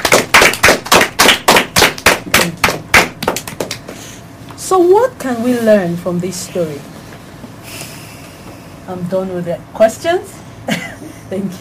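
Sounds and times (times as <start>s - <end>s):
hand claps: 0.0s - 4.0s
speech: 4.7s - 7.0s, 8.9s - 11.5s.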